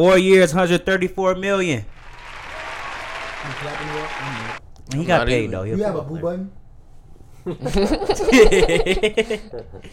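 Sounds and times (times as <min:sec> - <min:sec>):
speech: 0:00.0 - 0:01.9, 0:03.4 - 0:06.6, 0:07.4 - 0:09.9
crowd applauding: 0:01.9 - 0:04.6
laughter: 0:07.5 - 0:09.9.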